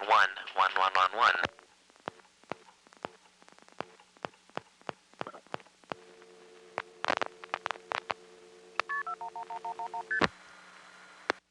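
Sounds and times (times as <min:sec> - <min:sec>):
speech: 0:00.1 - 0:01.6
sharp clicks and pops on a telephone line: 0:01.4 - 0:10.4
steady faint telephone line hum: 0:01.4 - 0:11.4
touch-tone DTMF dialing on a telephone line: 0:08.8 - 0:10.3.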